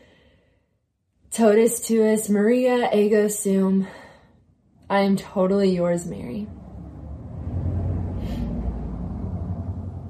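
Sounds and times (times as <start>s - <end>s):
speech: 1.4s - 4.0s, 4.9s - 6.6s
car passing by outside: 5.8s - 10.0s.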